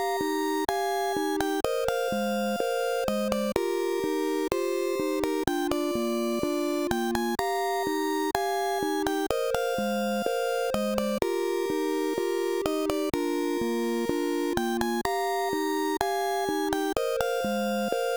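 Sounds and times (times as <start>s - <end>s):
slow melancholic C64 style music with refrain: 0.0s - 18.1s.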